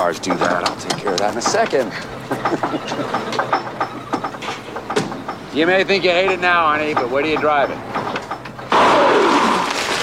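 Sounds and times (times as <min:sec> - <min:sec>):
speech: 0:00.0 - 0:03.6, 0:05.6 - 0:08.0
laughter: 0:01.1 - 0:04.2
car airbag deploying: 0:08.7 - 0:10.0.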